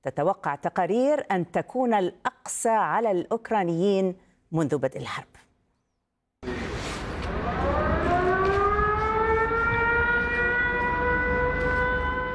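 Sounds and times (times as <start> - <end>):
speech: 0.0 - 5.4
air raid siren: 6.4 - 12.3.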